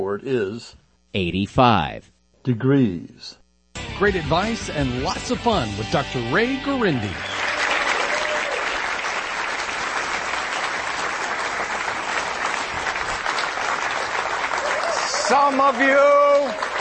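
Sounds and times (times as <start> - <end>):
speech: 0.1 - 3.4, 4.0 - 7.5, 15.3 - 16.7
studio audience applause: 7.0 - 16.7.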